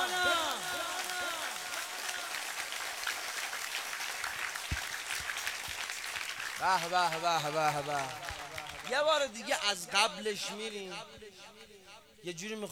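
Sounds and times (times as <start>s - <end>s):
audience in a Shia congregation clapping: 0.0s - 9.8s
speech: 6.6s - 11.6s, 12.2s - 12.7s.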